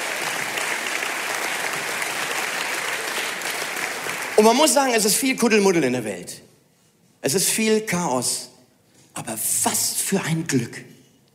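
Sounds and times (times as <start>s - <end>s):
audience applause: 0.0s - 4.8s
speech: 4.4s - 6.5s, 7.2s - 8.5s, 9.2s - 11.0s.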